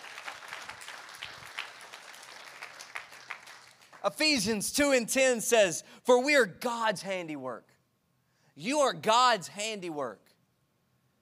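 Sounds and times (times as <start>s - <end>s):
people clapping their hands: 0.0s - 4.5s
speech: 4.0s - 7.7s, 8.6s - 10.2s.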